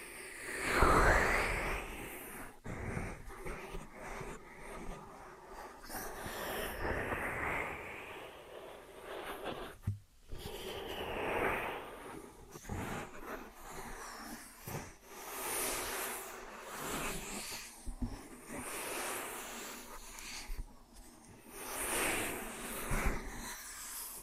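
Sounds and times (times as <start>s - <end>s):
ear and scalp massage rubbing and brushing strokes: 0.0s - 24.2s.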